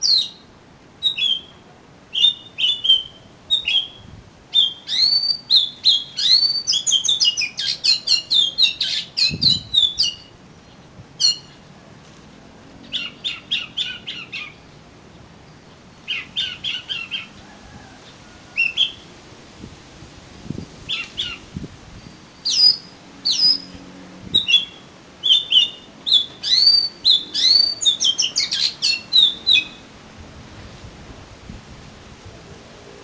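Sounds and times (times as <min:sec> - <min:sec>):
Oriental magpie-robin song: 0:00.0 - 0:11.7, 0:12.8 - 0:14.7, 0:15.7 - 0:17.4, 0:18.6 - 0:19.0, 0:20.9 - 0:21.4, 0:22.0 - 0:29.8.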